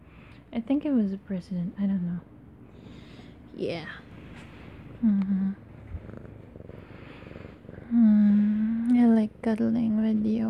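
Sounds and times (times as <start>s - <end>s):
speech: 0.6s - 2.3s, 3.6s - 4.1s, 5.0s - 5.6s, 9.1s - 10.4s
cat purring: 1.9s - 10.4s.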